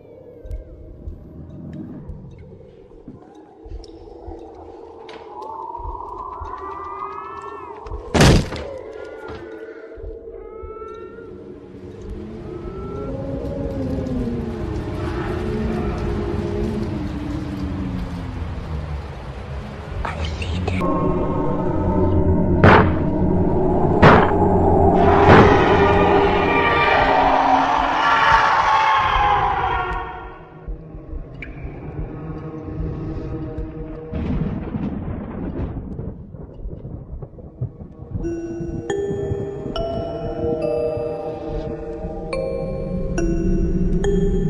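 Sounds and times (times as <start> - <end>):
terrifying horror sound effects: 0.0 - 36.5, 37.4 - 44.4
agonized screaming: 24.8 - 30.6.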